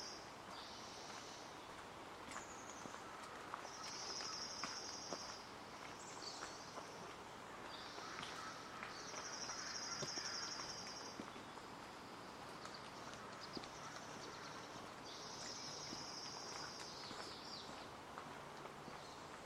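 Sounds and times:
traffic rumble at Hoyt Arboretum in Portland Oregon: 0.0s - 19.4s.

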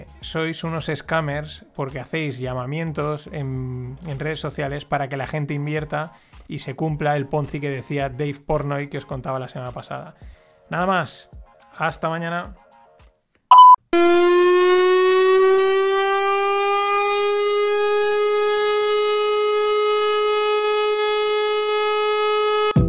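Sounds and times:
speech: 0.2s - 12.6s
brief beep: 13.5s - 13.8s
giant truck-mounted horn blaring: 14.0s - 22.8s.

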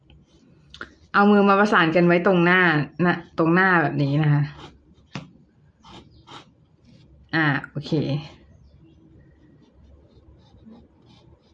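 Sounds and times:
drawing strokes scratching on paper: 0.0s - 1.4s, 4.5s - 7.1s, 9.2s - 11.5s
speech: 1.2s - 4.7s, 7.3s - 8.4s.

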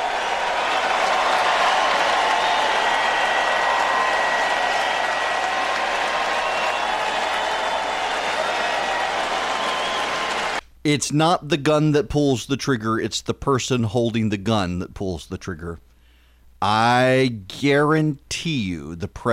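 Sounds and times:
rally crowd applause: 0.0s - 10.6s
speech: 10.8s - 15.9s, 16.6s - 19.3s.

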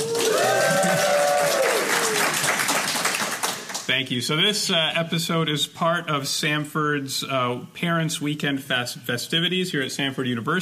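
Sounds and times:
live audience at Samford University Parents Weekend clapping and cheering: 0.0s - 3.9s
speech: 3.9s - 10.6s.

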